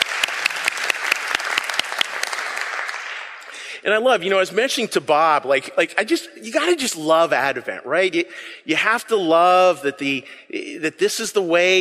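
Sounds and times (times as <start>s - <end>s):
audience applause: 0.0s - 3.4s
speech: 3.8s - 11.7s.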